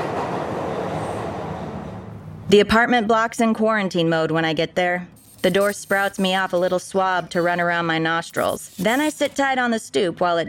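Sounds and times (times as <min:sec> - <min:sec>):
subway train riding on rails: 0:00.0 - 0:02.5
speech: 0:02.5 - 0:10.4.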